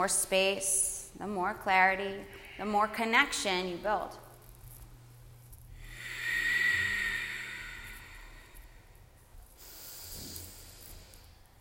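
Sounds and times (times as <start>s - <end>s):
speech: 0.0s - 4.2s
long hissing Ujjayi breaths in a yoga practice: 2.0s - 3.4s, 5.7s - 11.5s.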